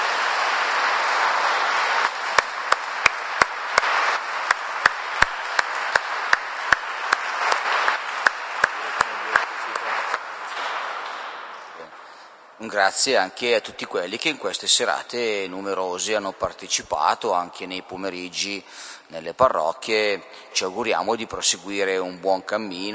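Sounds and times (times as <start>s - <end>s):
audience applause for a priest at a parish Lenten evening gathering: 0.0s - 12.3s
speech: 12.7s - 22.9s.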